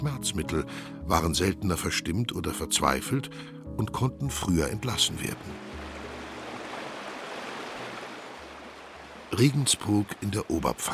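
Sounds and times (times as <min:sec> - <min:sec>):
speech: 0:00.1 - 0:05.9, 0:09.3 - 0:10.9
Danube flowing strongly under stone bridge in Regensburg: 0:05.3 - 0:10.9.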